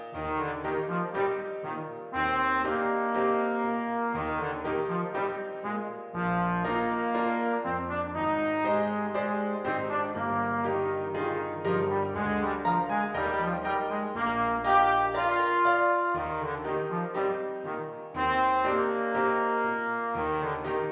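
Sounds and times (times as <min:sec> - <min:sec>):
trombone: 0:00.1 - 0:20.8.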